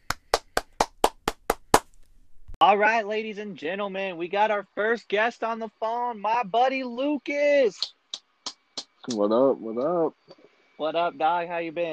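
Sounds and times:
applause: 0.0s - 1.5s
speech: 2.6s - 8.0s, 9.0s - 11.9s.

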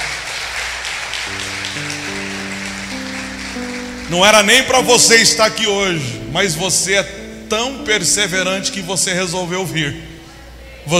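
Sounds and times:
audience applauding: 0.0s - 5.6s
speech: 4.1s - 10.1s.

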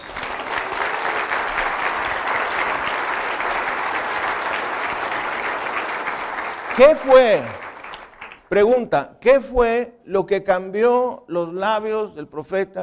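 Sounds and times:
audience applauding: 0.0s - 8.6s
speech: 6.8s - 7.6s, 8.5s - 12.8s.

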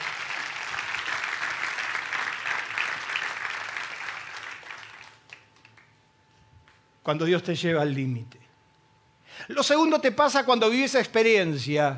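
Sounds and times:
loud applause: 0.0s - 5.9s
speech: 7.1s - 8.4s, 9.4s - 11.9s.

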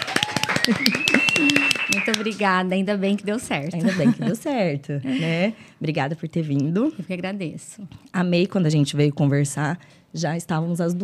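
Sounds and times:
audience applause: 0.0s - 2.4s
speech: 0.7s - 11.0s
laughter: 3.8s - 4.5s.

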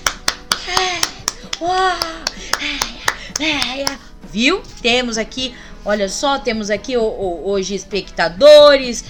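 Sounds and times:
person clapping hands: 0.0s - 4.0s
speech: 1.6s - 2.4s, 3.4s - 9.0s.

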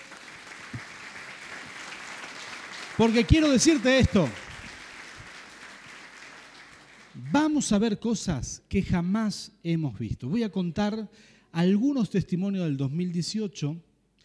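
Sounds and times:
applause: 0.0s - 7.7s
speech: 3.0s - 4.4s, 7.6s - 13.9s.

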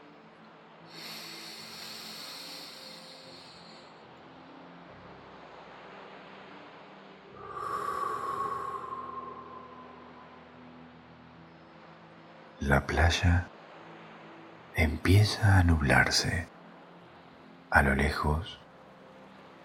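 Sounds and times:
deep breathing: 0.9s - 4.0s, 7.4s - 10.4s
speech: 12.6s - 13.5s, 15.0s - 16.5s, 17.8s - 18.6s.

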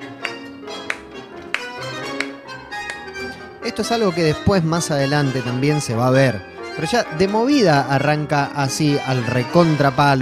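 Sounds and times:
rhythmic hand claps: 0.0s - 3.4s
tonal musical background: 0.0s - 10.2s
speech: 3.6s - 10.2s.

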